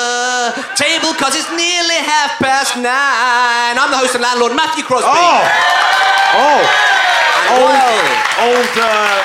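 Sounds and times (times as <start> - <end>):
laughter: 0.1 - 3.1
speech: 0.8 - 9.2
audience slow hand clap: 7.3 - 9.2.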